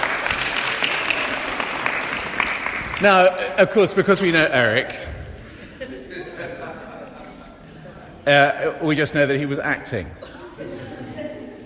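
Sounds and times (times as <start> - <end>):
audience applause: 0.0 - 4.6
speech: 3.0 - 5.1, 8.2 - 11.0
laughter: 5.0 - 8.9, 10.0 - 11.6.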